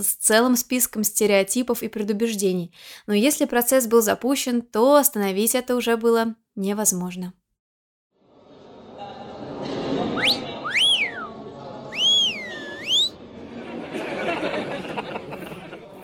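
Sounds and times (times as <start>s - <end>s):
speech: 0.0s - 7.4s
rowdy crowd chatter: 8.9s - 16.0s
male students wolf-whistling: 10.2s - 11.3s, 11.9s - 13.2s
scattered laughter: 13.6s - 16.0s.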